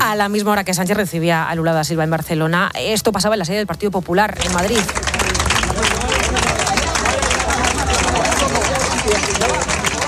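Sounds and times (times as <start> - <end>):
speech: 0.1 - 5.2
crowd applauding: 4.4 - 10.0
crowd shouting: 5.4 - 10.0.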